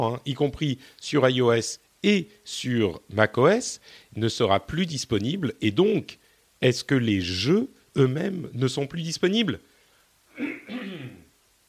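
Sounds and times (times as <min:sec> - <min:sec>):
speech: 0:00.0 - 0:09.7
person coughing: 0:10.3 - 0:11.3.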